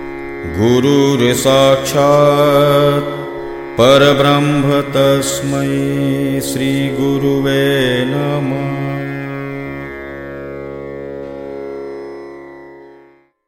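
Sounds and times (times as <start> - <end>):
mantra chanting: 0.4 - 9.9.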